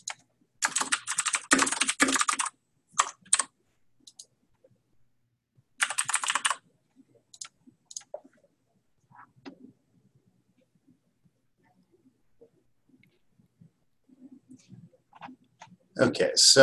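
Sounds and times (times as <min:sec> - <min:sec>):
typing an address on a computer keyboard into a property form: 0:00.0 - 0:03.5, 0:04.1 - 0:04.3, 0:05.8 - 0:06.6, 0:07.3 - 0:08.2.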